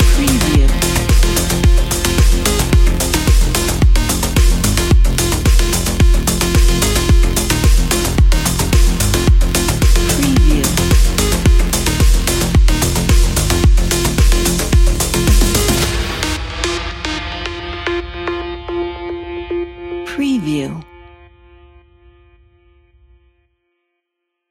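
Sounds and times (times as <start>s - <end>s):
sport electronica music: 0.0s - 16.4s, 20.1s - 20.8s.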